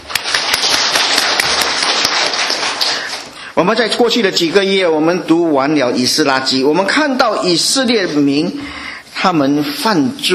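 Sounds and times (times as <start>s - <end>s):
audience applauding: 0.0s - 3.4s
speech: 3.6s - 10.3s.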